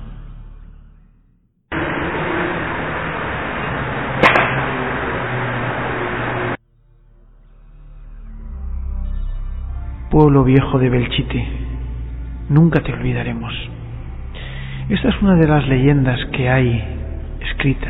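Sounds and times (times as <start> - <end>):
steady hiss of recording noise: 1.7 - 6.6
recorded musket gunshot in a psychophony: 4.2 - 5.4
speech: 10.2 - 11.7, 12.5 - 13.8, 14.9 - 17.8.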